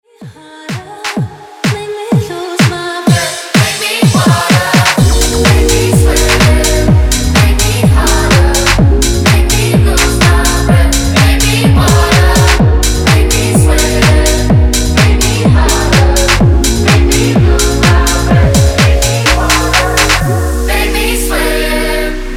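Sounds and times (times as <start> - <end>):
clean tech house music: 0.8 - 22.3.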